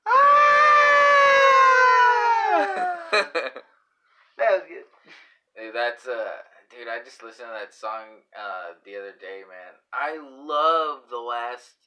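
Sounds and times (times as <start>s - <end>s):
person imitating a rock singer's scream: 0.0s - 3.4s
speech: 5.9s - 11.8s.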